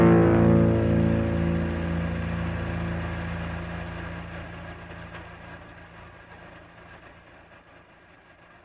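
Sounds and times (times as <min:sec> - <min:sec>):
blues music: 0:00.0 - 0:04.4.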